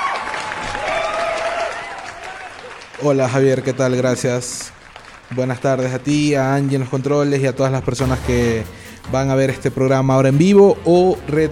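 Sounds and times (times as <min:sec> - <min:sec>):
audience applause welcoming a guest on a live program: 0:00.0 - 0:07.5
speech: 0:03.0 - 0:11.5.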